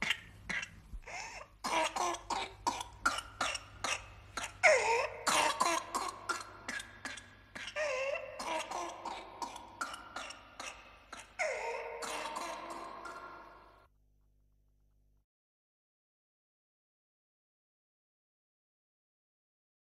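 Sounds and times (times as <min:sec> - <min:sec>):
child's whooping cough fits: 0:00.0 - 0:13.8.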